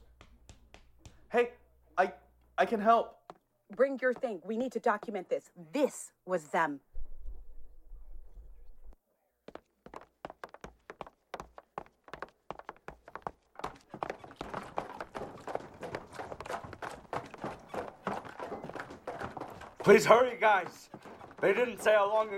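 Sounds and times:
running footsteps of someone carrying a full bucket of water: 0:00.0 - 0:01.4, 0:09.5 - 0:22.3
speech: 0:01.3 - 0:06.9, 0:19.9 - 0:22.3.

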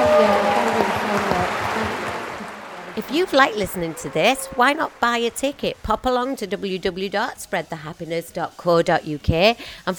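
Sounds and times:
audience applause: 0:00.0 - 0:05.4
speech: 0:03.0 - 0:09.9.

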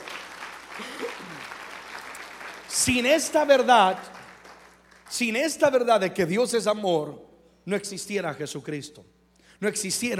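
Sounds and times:
audience applauding loudly: 0:00.0 - 0:05.4
speech: 0:02.7 - 0:04.2, 0:05.1 - 0:10.1.

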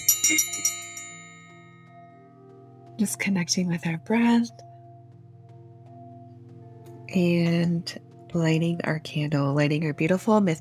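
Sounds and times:
meditation bell ringing: 0:00.0 - 0:10.5
speech: 0:00.3 - 0:00.8, 0:03.0 - 0:04.6, 0:07.1 - 0:10.5.

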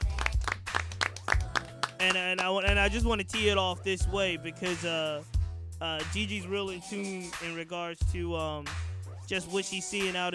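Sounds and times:
audience clapping: 0:00.0 - 0:02.6
speech: 0:02.0 - 0:10.3.

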